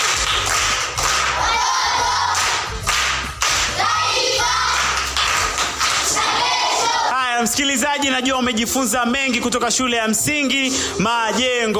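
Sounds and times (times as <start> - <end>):
applause for all participants at a primary school: 0.0 - 1.4, 2.3 - 3.8, 4.7 - 6.2
crowd noise: 3.7 - 4.7, 6.1 - 11.7
speech: 7.6 - 11.7.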